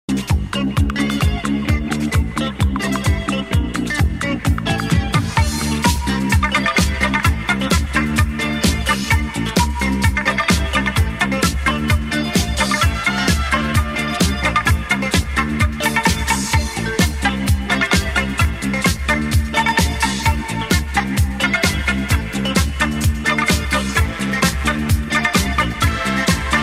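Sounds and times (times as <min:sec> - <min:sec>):
instrumental music: 0:00.1 - 0:26.6.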